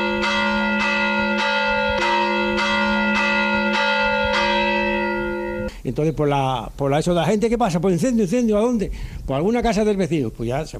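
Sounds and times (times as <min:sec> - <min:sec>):
church bell rung as fire alarm: 0:00.0 - 0:05.7
speech: 0:05.8 - 0:10.7.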